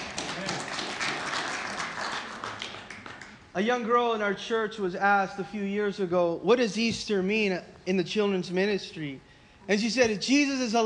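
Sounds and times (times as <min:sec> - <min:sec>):
audience clapping: 0:00.0 - 0:03.5
speech: 0:03.6 - 0:10.8.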